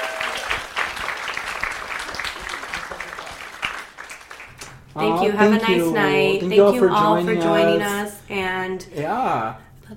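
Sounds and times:
audience applause: 0.0 - 5.0
speech: 5.0 - 9.9.

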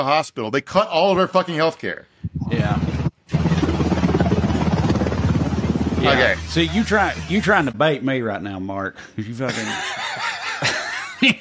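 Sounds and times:
speech: 0.0 - 3.5, 6.0 - 11.4
medevac helicopter landing: 2.4 - 7.8
laughter: 9.5 - 11.4.

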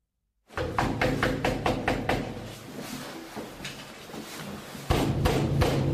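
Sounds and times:
police pounding on a door during raid: 0.5 - 2.5, 4.9 - 5.9.

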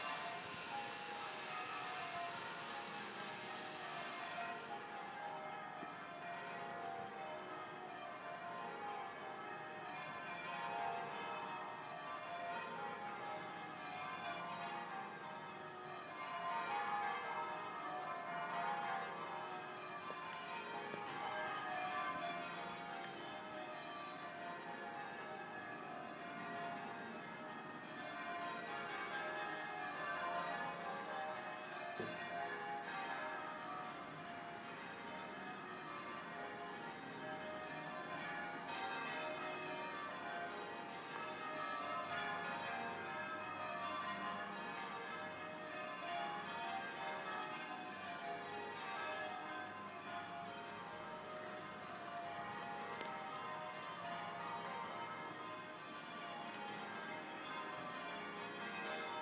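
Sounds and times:
Sunday bells ringing: 0.0 - 59.2.

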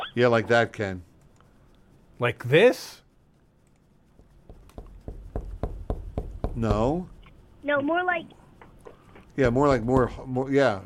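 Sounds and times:
speech: 0.2 - 1.1, 2.2 - 3.0, 6.6 - 8.4, 9.4 - 10.8
knocking on a door: 4.4 - 7.0, 9.4 - 10.3.

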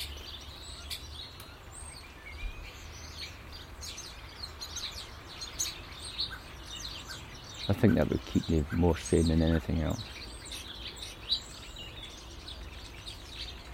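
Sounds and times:
birdsong: 0.0 - 13.7
speech: 7.7 - 10.2.

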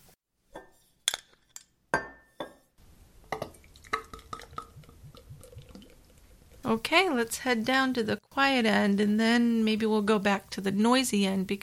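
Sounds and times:
glass bottle of Wyoming beer clinking as it is opened: 0.6 - 2.6
beer fizzing with dripping and bubbling: 3.3 - 6.8
speech: 6.7 - 11.6.

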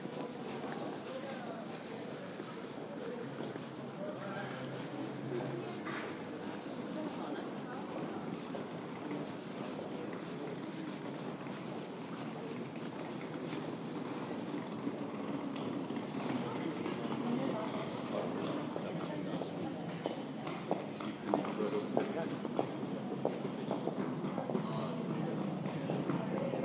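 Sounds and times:
people strolling on a traffic-free Copenhagen autumn evening: 0.0 - 26.6.

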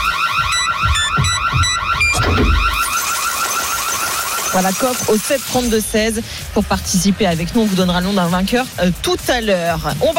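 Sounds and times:
electronic alert signal for a radio contest with warbling siren-like tones: 0.0 - 5.9
speech: 4.6 - 10.1.

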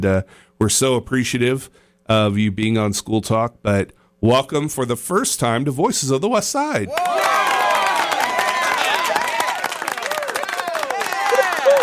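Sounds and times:
speech: 0.0 - 7.6
canned studio-audience applause triggered from a sound button: 6.9 - 11.8.

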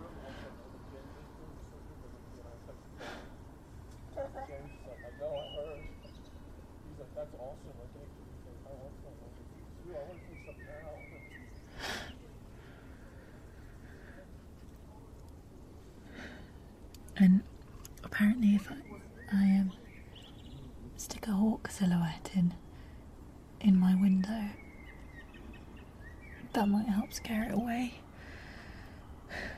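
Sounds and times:
low rumble: 0.0 - 29.5
blackbird singing late at night: 4.4 - 6.5, 9.6 - 12.2, 18.4 - 20.8, 23.9 - 27.8
faint clicks: 14.6 - 15.5, 16.8 - 18.1
speech: 17.2 - 17.5, 18.2 - 19.8, 21.7 - 22.6, 26.6 - 28.0.

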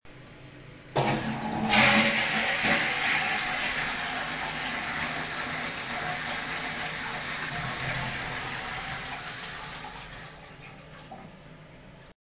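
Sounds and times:
flushing: 1.0 - 11.4.

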